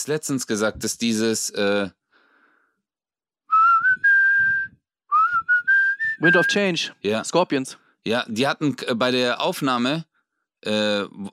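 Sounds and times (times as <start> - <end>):
speech: 0.0 - 2.0, 6.2 - 11.3
person whistling a melody: 3.5 - 6.6.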